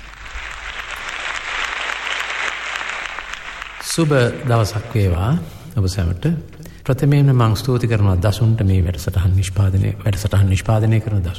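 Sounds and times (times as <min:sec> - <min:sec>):
audience applause welcoming a veteran singer at a song concert: 0:00.0 - 0:05.2
speech: 0:04.0 - 0:11.3.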